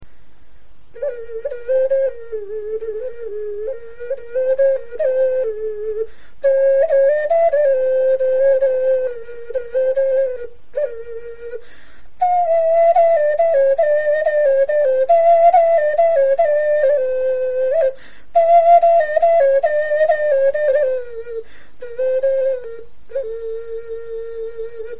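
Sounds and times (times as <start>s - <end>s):
bone flute melody: 1.0s - 24.9s.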